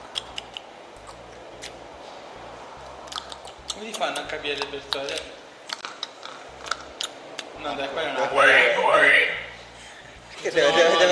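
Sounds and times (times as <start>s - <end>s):
tongue clicks against the teeth imitating a south-west African click language: 0.0s - 1.8s, 3.1s - 7.6s
low steady hiss: 0.0s - 11.0s
speech: 3.8s - 5.4s, 7.6s - 9.4s, 10.4s - 11.0s.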